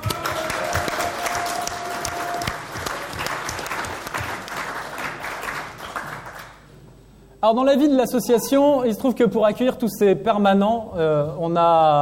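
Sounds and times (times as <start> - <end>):
audience applauding: 0.0 - 6.6
speech: 7.4 - 12.0.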